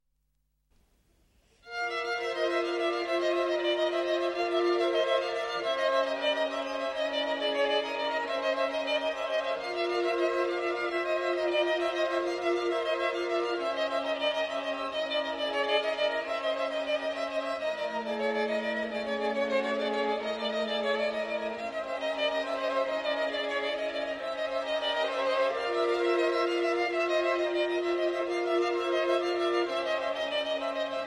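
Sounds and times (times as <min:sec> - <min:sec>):
string quartet: 0:01.6 - 0:31.0.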